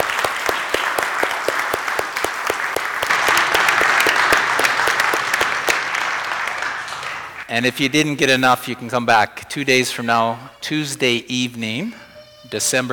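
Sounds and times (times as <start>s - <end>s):
crowd applause: 0.0s - 7.5s
speech: 7.5s - 12.9s.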